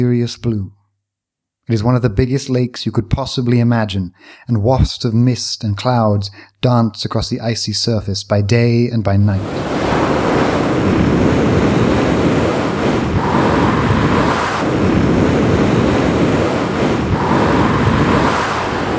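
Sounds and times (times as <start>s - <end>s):
speech: 0.0s - 0.8s, 1.7s - 9.8s
wind rushing across an open plain: 9.4s - 18.9s.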